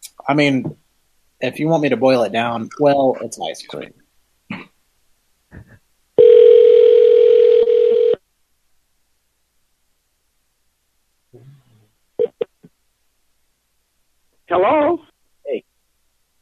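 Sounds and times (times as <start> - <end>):
speech: 0.3 - 0.8, 1.4 - 4.0, 14.5 - 15.7
telephone dial tone: 6.2 - 8.2.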